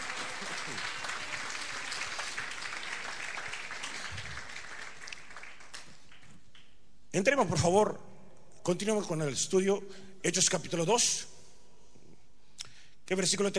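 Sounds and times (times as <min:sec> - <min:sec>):
audience applause: 0:00.0 - 0:06.4
speech: 0:07.1 - 0:08.1, 0:08.7 - 0:11.3, 0:13.1 - 0:13.5.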